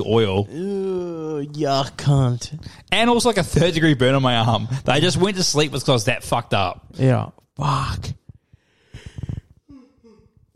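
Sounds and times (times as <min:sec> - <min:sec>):
speech: 0:00.0 - 0:08.2
yawn: 0:00.5 - 0:01.4.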